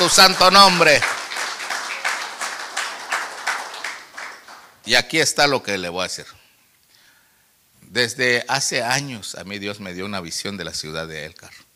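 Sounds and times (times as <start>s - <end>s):
speech: 0.0s - 1.1s, 4.8s - 6.4s, 7.9s - 11.6s
audience clapping rhythmically: 0.0s - 4.9s.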